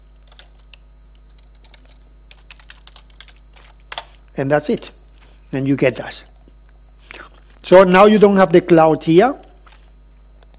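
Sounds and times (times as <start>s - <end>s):
constant low electrical hum: 0.0s - 10.5s
keystrokes on a computer keyboard as a name is typed: 0.2s - 0.6s, 1.3s - 3.4s
speech: 4.4s - 6.3s, 7.7s - 9.4s.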